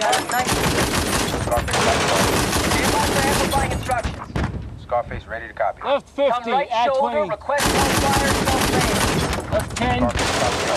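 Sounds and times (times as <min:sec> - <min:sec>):
rapid gunfire from a mounted gun on a Humvee roof: 0:00.4 - 0:03.8, 0:07.6 - 0:10.7
speech: 0:05.0 - 0:09.0, 0:09.6 - 0:10.7.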